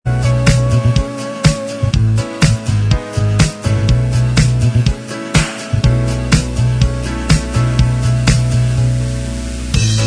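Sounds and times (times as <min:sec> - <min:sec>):
instrumental backing track: 0:00.1 - 0:10.0.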